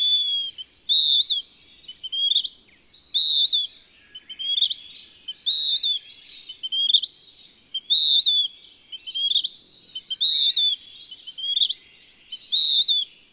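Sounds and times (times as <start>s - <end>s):
western wood-pewee whistling: 0.0s - 2.4s, 3.1s - 3.7s, 4.4s - 6.0s, 7.8s - 10.8s, 12.5s - 13.1s.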